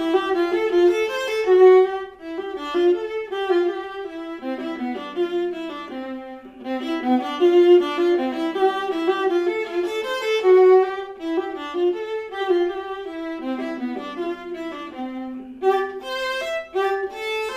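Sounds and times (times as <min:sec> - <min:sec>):
viola playing a German dance in C: 0:00.0 - 0:17.5.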